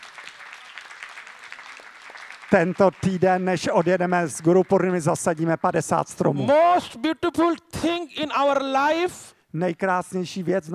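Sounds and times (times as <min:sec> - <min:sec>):
audience clapping: 0:00.0 - 0:06.0
speech: 0:02.5 - 0:10.7.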